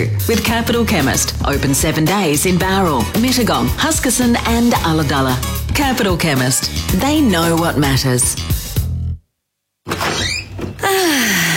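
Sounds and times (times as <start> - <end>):
speech: 0.0 - 8.6
door opening: 9.8 - 11.0.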